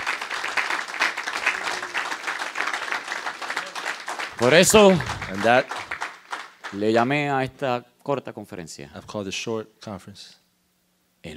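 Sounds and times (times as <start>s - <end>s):
crowd clapping: 0.0s - 7.2s
speech: 4.4s - 5.9s, 6.7s - 10.4s.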